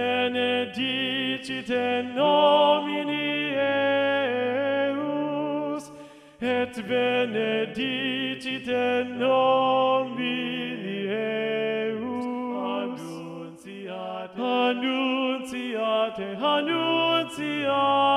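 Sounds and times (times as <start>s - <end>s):
TTBB choir with second tenor part predominant: 0.0s - 18.1s.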